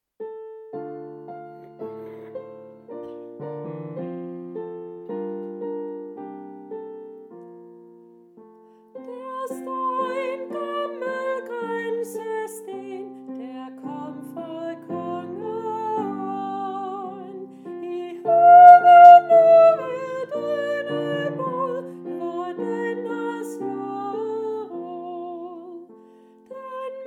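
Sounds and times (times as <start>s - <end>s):
soprano voice: 9.0s - 27.0s.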